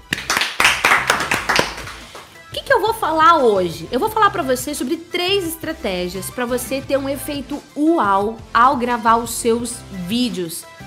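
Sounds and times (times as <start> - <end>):
applause clapping: 0.0 - 2.4
speech: 3.1 - 10.7.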